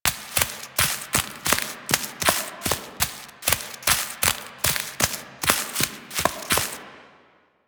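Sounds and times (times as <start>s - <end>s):
horse walking through vegetation: 0.0s - 6.8s.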